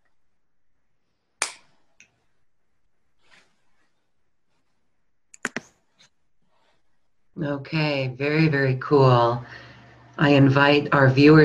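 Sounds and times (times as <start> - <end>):
fingers snapping: 1.4 - 1.6
speech: 7.4 - 9.6, 10.2 - 11.4.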